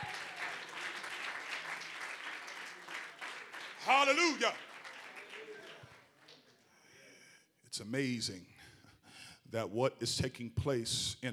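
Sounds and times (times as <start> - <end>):
audience clapping hands: 0.0 - 6.6
speech: 3.9 - 4.7, 7.8 - 8.5, 9.5 - 11.3.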